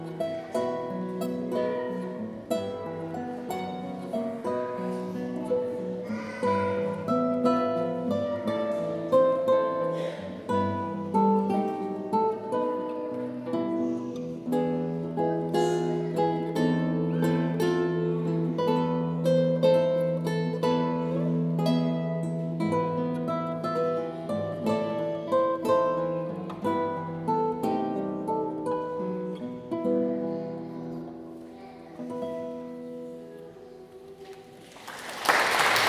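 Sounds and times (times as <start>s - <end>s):
guitar trio playing: 0.0s - 34.8s.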